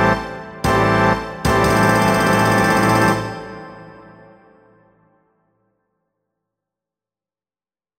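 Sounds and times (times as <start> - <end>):
sinfonia: 0.0 - 4.7.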